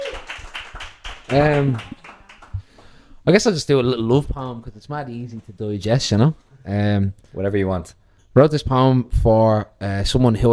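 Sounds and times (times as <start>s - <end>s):
audience applause: 0.0s - 2.9s
speech: 1.3s - 2.0s, 3.2s - 10.5s.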